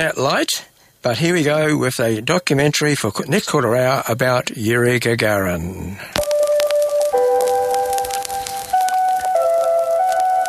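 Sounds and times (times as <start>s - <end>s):
speech: 0.0s - 6.2s
crackling static: 0.0s - 10.4s
radio station interval signal chimes: 6.2s - 10.4s.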